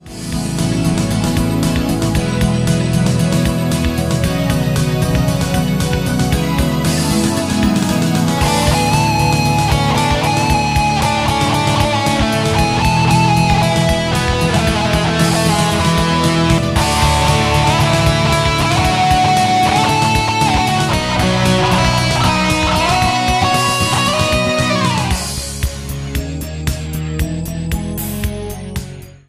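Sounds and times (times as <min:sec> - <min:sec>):
solo cover: 0:00.0 - 0:28.4.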